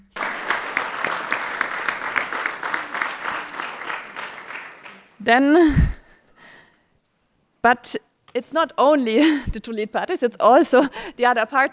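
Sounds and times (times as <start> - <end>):
audience applause: 0.0 - 5.2
speech: 5.2 - 6.0, 7.6 - 11.7.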